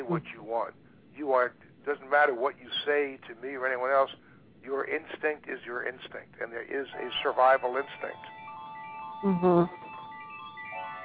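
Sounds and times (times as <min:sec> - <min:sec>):
faint steady tonal hum: 0:00.0 - 0:11.0
speech: 0:00.1 - 0:08.4, 0:09.2 - 0:09.8
Skype phone ringtone: 0:06.9 - 0:11.0.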